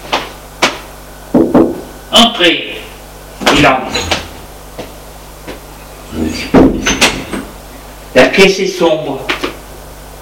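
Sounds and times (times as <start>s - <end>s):
sharp knocks on a door: 1.4s - 1.8s, 6.5s - 7.3s
speech: 2.1s - 2.8s, 3.6s - 4.2s, 8.4s - 9.3s
thump or rustle: 6.5s - 7.2s.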